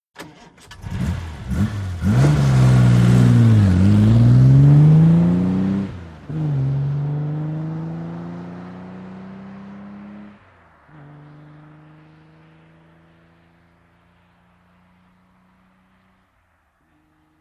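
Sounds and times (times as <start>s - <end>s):
Aston Martin engine starting: 0.1s - 12.3s
Aston Martin departing and accelerating: 0.2s - 17.3s.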